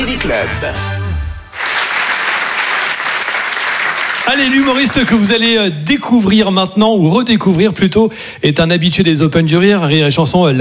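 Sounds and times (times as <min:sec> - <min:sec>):
speech: 0:00.2 - 0:00.9, 0:04.2 - 0:10.5
audience at a comedy club applauding: 0:01.5 - 0:05.5.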